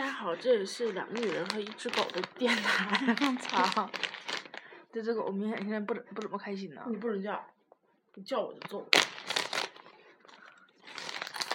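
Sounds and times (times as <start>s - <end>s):
speech: 0.2s - 4.3s, 4.9s - 7.6s, 8.2s - 9.1s
person crunching potato chips: 1.0s - 4.7s, 8.9s - 11.5s.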